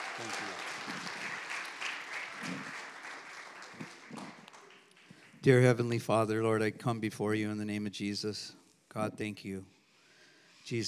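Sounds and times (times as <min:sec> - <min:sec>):
audience applause: 0:00.0 - 0:05.4
speech: 0:05.4 - 0:09.8, 0:10.7 - 0:10.8.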